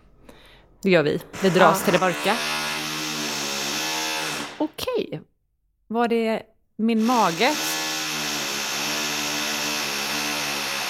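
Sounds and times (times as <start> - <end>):
speech: 0.8 - 2.6, 4.6 - 5.3, 5.9 - 7.7
drilling: 1.3 - 4.7, 7.0 - 10.8.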